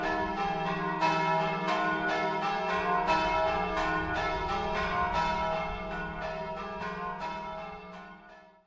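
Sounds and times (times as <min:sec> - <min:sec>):
bells ringing: 0:00.0 - 0:08.5.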